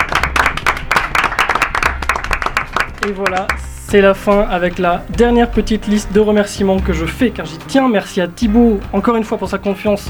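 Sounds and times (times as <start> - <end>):
small group applauding: 0.0 - 4.3
speech: 3.0 - 10.0.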